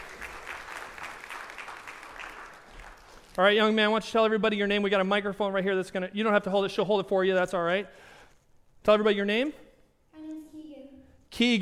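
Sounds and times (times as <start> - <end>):
audience applause: 0.0 - 3.4
speech: 3.4 - 8.1, 8.8 - 9.6, 11.4 - 11.6.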